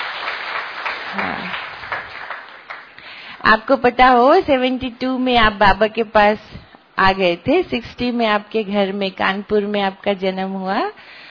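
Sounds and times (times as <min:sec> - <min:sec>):
audience clapping with both hands: 0:00.0 - 0:03.2
speech: 0:01.2 - 0:01.7, 0:03.4 - 0:11.2.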